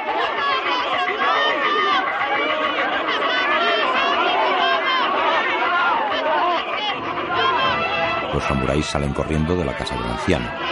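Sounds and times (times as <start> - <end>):
panicked villagers shouting and screaming in Seven Samurai: 0.0 - 10.6
speech: 8.4 - 10.6.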